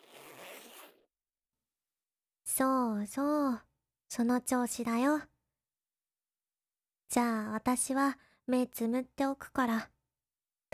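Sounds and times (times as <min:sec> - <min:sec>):
clothing zipper being pulled down: 0:00.0 - 0:01.1
speech: 0:02.6 - 0:05.3, 0:07.1 - 0:09.9.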